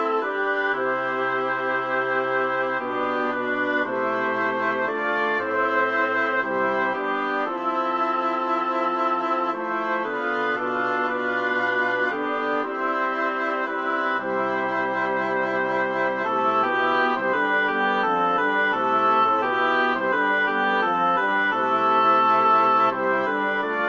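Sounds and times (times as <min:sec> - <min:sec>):
computer-generated woodwind timbres playing a piece for mixed four-voice choir: 0:00.0 - 0:23.8.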